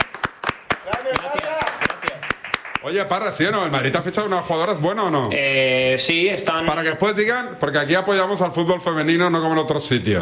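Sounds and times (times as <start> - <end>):
people clapping: 0.0 - 3.4
speech: 2.8 - 10.2.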